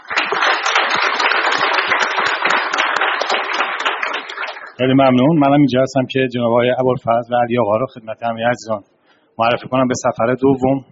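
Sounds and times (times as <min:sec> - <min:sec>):
audience clapping at a congress gathering honouring the Congress 60 organisation: 0:00.0 - 0:04.8
speech: 0:04.8 - 0:10.9.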